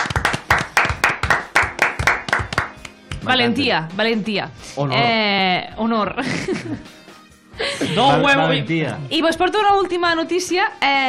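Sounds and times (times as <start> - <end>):
audience applause, ovation: 0.0 - 2.7
speech: 3.3 - 7.0, 7.6 - 11.0.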